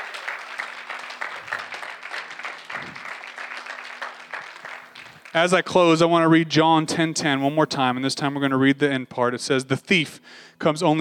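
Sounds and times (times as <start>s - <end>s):
audience hand clap of praise: 0.0s - 5.8s
speech: 5.3s - 11.0s.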